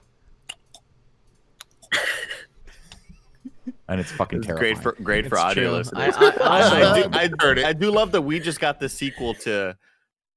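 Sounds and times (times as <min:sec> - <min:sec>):
voice imitating slow absent-minded chewing: 0:00.4 - 0:00.9, 0:01.5 - 0:01.9
laughter: 0:02.0 - 0:09.6
speech: 0:03.9 - 0:09.9.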